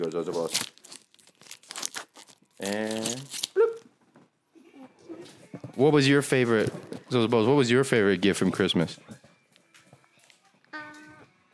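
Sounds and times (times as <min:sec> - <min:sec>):
speech: 0:00.0 - 0:00.9, 0:02.6 - 0:03.4, 0:05.8 - 0:09.2
crinkly plastic cheese wrapper being torn open: 0:00.0 - 0:03.8.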